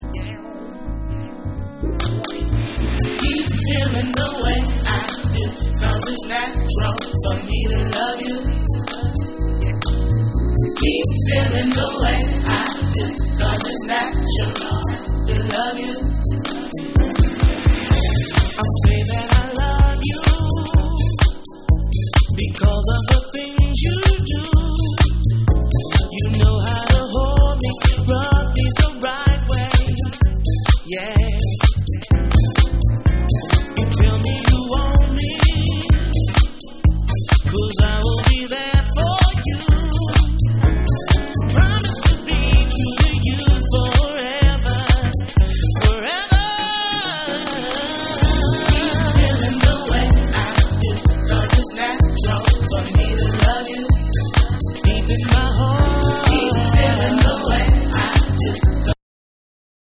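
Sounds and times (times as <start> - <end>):
big room dub electronic dance music: 0.0 - 59.0.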